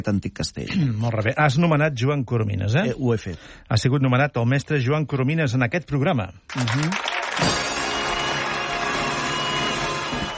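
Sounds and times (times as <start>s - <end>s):
speech: 0.0s - 7.6s
audience ovation: 6.5s - 10.3s.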